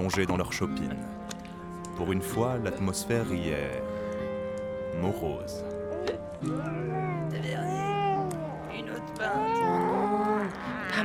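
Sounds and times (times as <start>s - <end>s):
speech: 0.0s - 1.2s, 2.0s - 4.0s, 5.0s - 7.8s, 9.2s - 9.9s
child crying: 6.0s - 11.0s.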